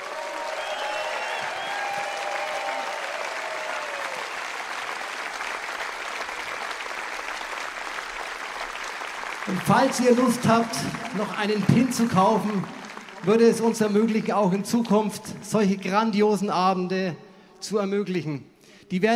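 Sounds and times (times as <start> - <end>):
audience applause: 0.0 - 15.1
speech: 9.5 - 19.1.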